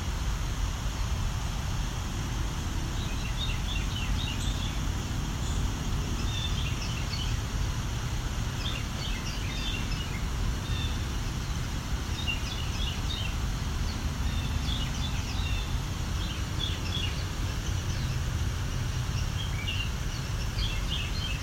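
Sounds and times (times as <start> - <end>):
low rumble and hiss: 0.0 - 21.4
Carolina wren, likely male, singing quietly while practicing its song: 0.1 - 21.4.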